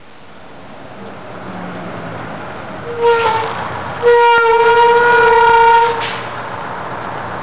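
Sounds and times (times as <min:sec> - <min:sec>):
vehicle: 0:00.0 - 0:07.4.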